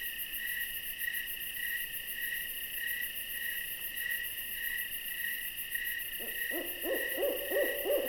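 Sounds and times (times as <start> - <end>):
crickets pulsing: 0.0 - 8.0
owl hooting: 6.2 - 8.0.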